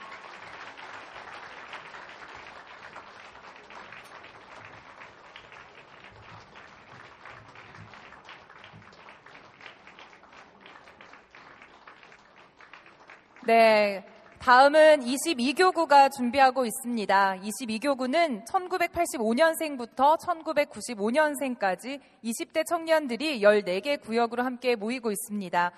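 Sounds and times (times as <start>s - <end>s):
audience applause for a church district group at a congregational event: 0.0s - 14.4s
speech: 13.5s - 25.7s.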